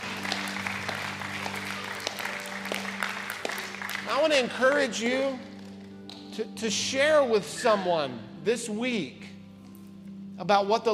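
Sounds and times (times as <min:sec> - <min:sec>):
audience hand clapping: 0:00.0 - 0:06.3
speech: 0:04.2 - 0:05.5, 0:06.4 - 0:09.3, 0:10.4 - 0:10.9.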